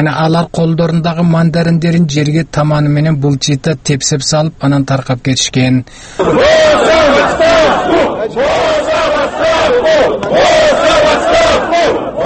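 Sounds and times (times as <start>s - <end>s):
speech: 0.0s - 12.0s
rally crowd in Kaliningrad region chanting demands for Putin's resignation: 6.2s - 12.2s.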